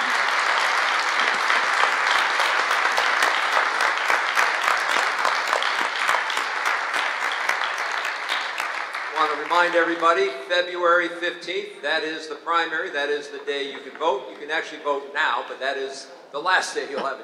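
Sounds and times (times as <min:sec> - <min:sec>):
audience applause: 0:00.0 - 0:10.1
speech: 0:09.4 - 0:17.2.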